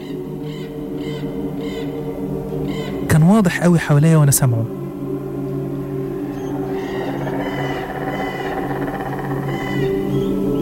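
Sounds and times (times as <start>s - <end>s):
crows cawing: 0.0s - 3.1s, 5.9s - 10.5s
speech: 3.3s - 4.8s.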